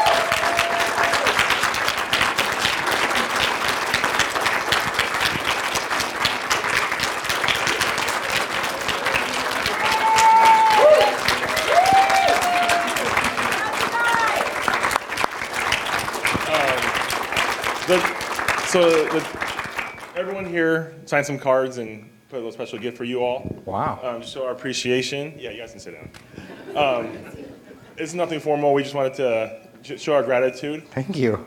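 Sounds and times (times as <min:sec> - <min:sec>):
cheers and whistles: 0:00.0 - 0:01.4, 0:09.7 - 0:14.5
crowd applauding: 0:00.0 - 0:20.2
speech: 0:20.5 - 0:27.4, 0:28.0 - 0:31.4
laughter: 0:26.3 - 0:28.0.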